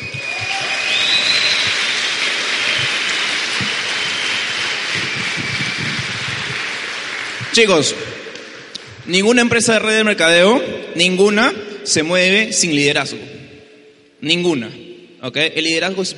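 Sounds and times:
audience applause: 0.0s - 8.8s
speech: 7.6s - 8.1s, 9.1s - 13.4s, 14.2s - 16.1s.

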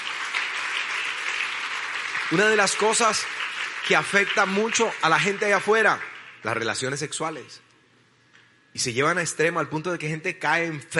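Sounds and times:
crowd applauding: 0.0s - 6.8s
speech: 2.3s - 7.7s, 8.8s - 10.9s.

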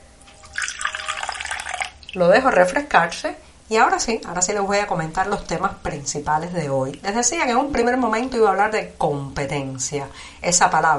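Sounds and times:
freshly brewed hot coffee poured into a cup: 0.3s - 2.2s
speech: 2.1s - 10.9s.

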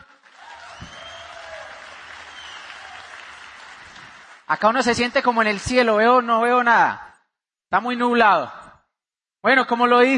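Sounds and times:
audience applause: 0.0s - 6.0s
speech: 4.5s - 7.1s, 7.7s - 8.6s, 9.4s - 10.1s.

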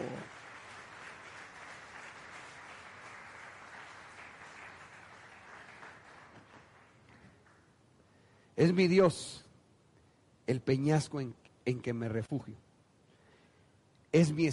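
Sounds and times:
audience clapping: 0.0s - 7.8s
speech: 8.6s - 9.4s, 10.5s - 12.6s, 14.1s - 14.5s.

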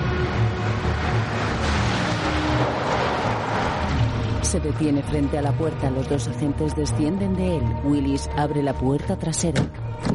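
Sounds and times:
car approaching with engine rumble: 0.0s - 6.6s
speech: 4.5s - 10.1s.

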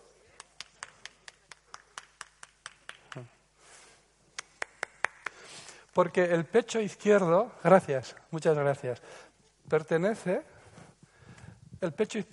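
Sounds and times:
audience clapping in rhythm: 0.3s - 3.4s, 4.3s - 5.5s
speech: 3.1s - 3.4s, 6.0s - 10.5s, 11.8s - 12.3s.

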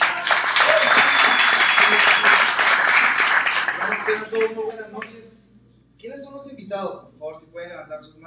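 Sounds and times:
audience applause: 0.0s - 4.6s
speech: 4.3s - 5.0s, 6.7s - 8.2s.

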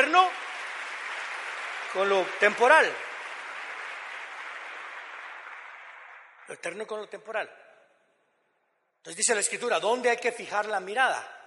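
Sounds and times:
audience applause: 0.0s - 6.6s
speech: 2.0s - 3.1s, 6.5s - 7.6s, 9.0s - 11.4s.

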